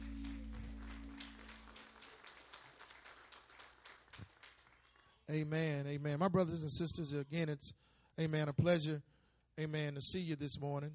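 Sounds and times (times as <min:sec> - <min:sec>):
audience hand clapping: 0:00.0 - 0:05.3
speech: 0:05.3 - 0:10.9.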